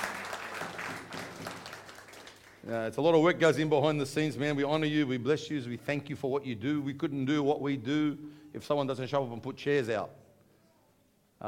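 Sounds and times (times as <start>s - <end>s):
audience applause: 0.0s - 2.6s
speech: 2.6s - 10.2s.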